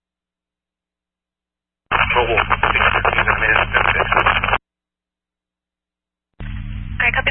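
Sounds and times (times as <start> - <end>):
harsh band-limited radio static: 1.9 - 4.6.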